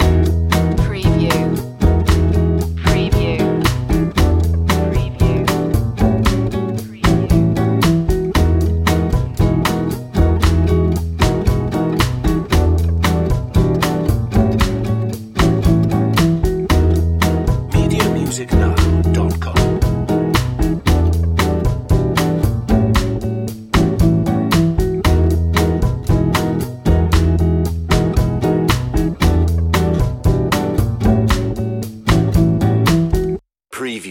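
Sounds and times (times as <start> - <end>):
bossa nova groove: 0.0 - 33.2.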